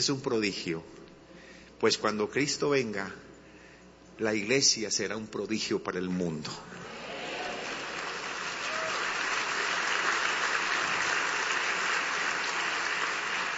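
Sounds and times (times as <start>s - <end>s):
speech: 0.0s - 1.0s, 1.8s - 3.3s, 4.2s - 6.8s
audience applause: 6.8s - 13.5s.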